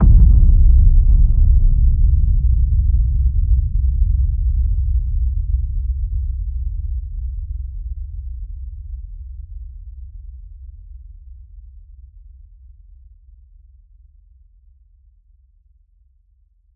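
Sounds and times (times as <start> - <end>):
designed cinematic boom hits: 0.0 - 5.2.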